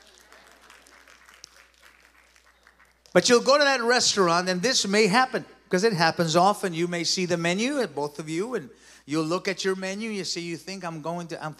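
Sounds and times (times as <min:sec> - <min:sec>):
women in audience applauding: 0:00.0 - 0:03.2
speech: 0:03.1 - 0:11.5.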